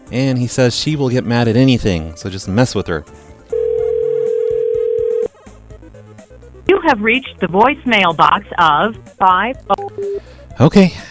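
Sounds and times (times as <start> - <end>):
speech: 0.1 - 3.3, 6.7 - 11.0
phone call ringing tone: 3.5 - 5.3.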